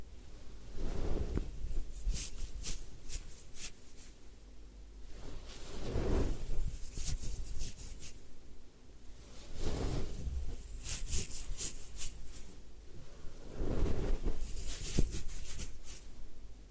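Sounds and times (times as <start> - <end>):
head spa hair wash scrubbing and swishing: 0.8 - 4.2, 5.2 - 8.2, 9.4 - 12.5, 13.4 - 16.1.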